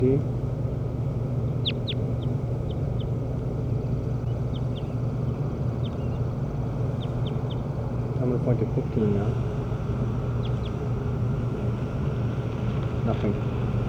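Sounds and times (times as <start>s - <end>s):
speech: 0.0s - 0.4s, 8.4s - 9.6s, 13.1s - 13.7s
bird calling in response: 1.2s - 12.3s.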